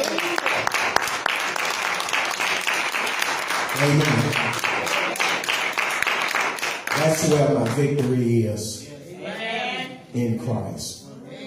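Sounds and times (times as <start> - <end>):
audience clapping hands: 0.0 - 8.3
speech: 3.8 - 4.6, 7.1 - 8.8, 10.1 - 11.0.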